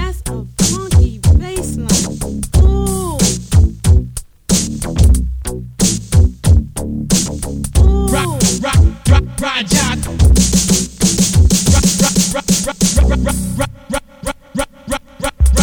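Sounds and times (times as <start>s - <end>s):
funky dub bass: 0.0s - 12.2s, 12.9s - 13.8s, 15.4s - 15.6s.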